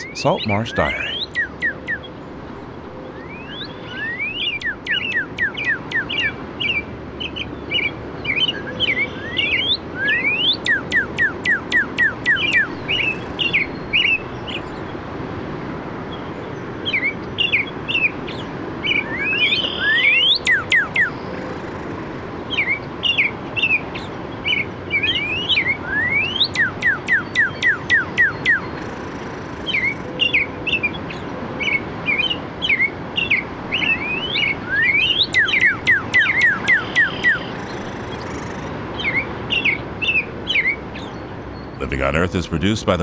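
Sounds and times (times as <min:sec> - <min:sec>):
robin song: 0:00.0 - 0:15.0, 0:16.0 - 0:43.0
steady hiss: 0:00.0 - 0:43.0
speech: 0:00.2 - 0:01.2, 0:42.1 - 0:43.0.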